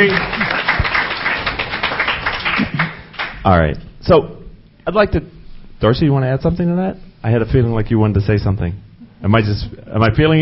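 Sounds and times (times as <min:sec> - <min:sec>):
audience round of applause: 0:00.0 - 0:03.4
speech: 0:03.5 - 0:10.4.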